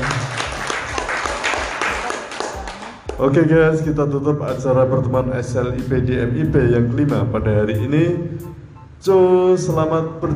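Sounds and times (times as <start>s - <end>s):
applause: 0.0s - 3.2s
speech: 3.2s - 10.3s.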